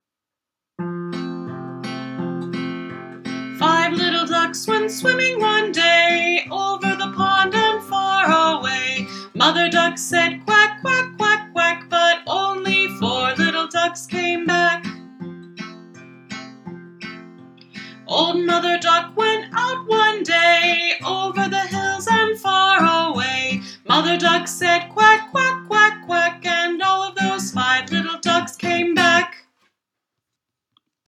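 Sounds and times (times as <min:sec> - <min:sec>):
children's song: 0:03.6 - 0:15.0, 0:18.0 - 0:29.4.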